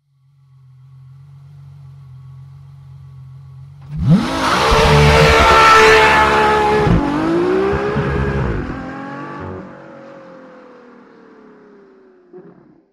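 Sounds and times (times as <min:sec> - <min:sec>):
F150 wheelspin start: 0:04.2 - 0:08.6.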